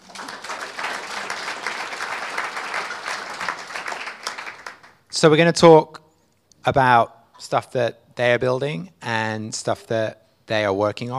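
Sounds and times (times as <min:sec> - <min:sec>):
audience applause welcoming a four-person panel onto a stage: 0:00.0 - 0:05.0
speech: 0:05.2 - 0:06.0, 0:06.6 - 0:11.1.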